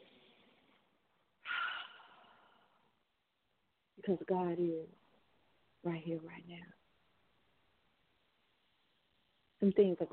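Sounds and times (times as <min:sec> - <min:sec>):
deep breath taken during a guided prayer and meditation: 0:01.4 - 0:02.9
speech: 0:04.0 - 0:05.0, 0:05.8 - 0:06.8, 0:09.6 - 0:10.1.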